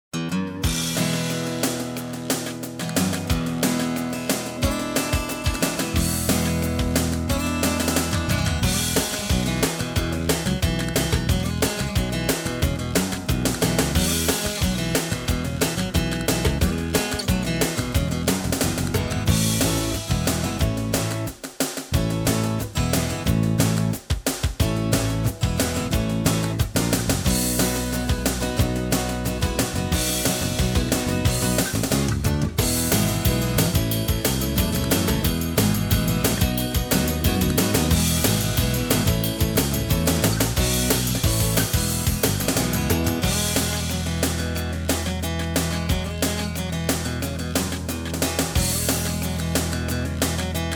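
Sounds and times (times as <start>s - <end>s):
country music: 0.0s - 50.7s.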